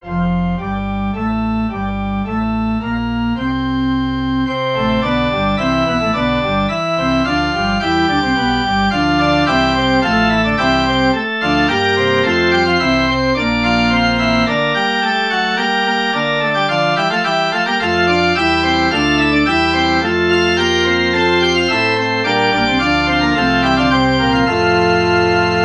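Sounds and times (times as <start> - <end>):
musical prelude: 0.0 - 25.6.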